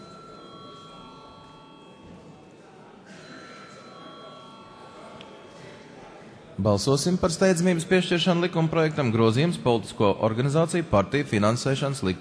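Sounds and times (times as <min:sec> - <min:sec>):
parliament chamber bell ringing: 0:00.0 - 0:02.4, 0:03.3 - 0:05.5
murmur of the hall: 0:00.0 - 0:12.1
speech: 0:06.6 - 0:12.1.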